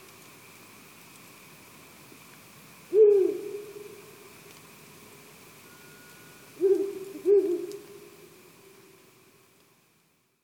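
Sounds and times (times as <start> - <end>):
faint hiss: 0.0 - 10.4
Ural owl hooting: 2.9 - 4.1, 6.6 - 8.3.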